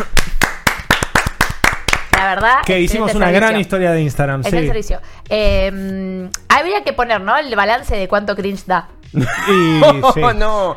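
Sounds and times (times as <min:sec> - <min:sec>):
hand clapping: 0:00.0 - 0:02.8
speech: 0:02.2 - 0:10.7
laughter: 0:09.2 - 0:10.7.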